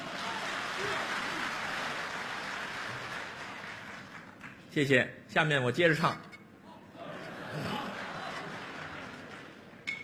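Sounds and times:
audience applause: 0:00.0 - 0:04.6, 0:07.6 - 0:09.8
speech: 0:04.7 - 0:06.3, 0:07.6 - 0:07.9
laughter: 0:06.9 - 0:09.6.

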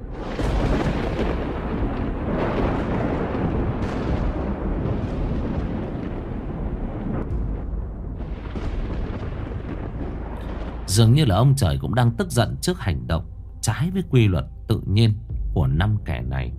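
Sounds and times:
deafening thunderclap: 0:00.0 - 0:12.9
speech: 0:11.0 - 0:16.5.

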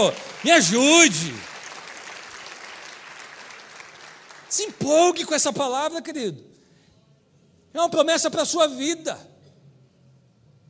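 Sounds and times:
speech: 0:00.0 - 0:01.5, 0:04.5 - 0:06.6, 0:07.7 - 0:09.3
congregation applause in a Methodist cathedral during a sermon: 0:00.0 - 0:05.5.

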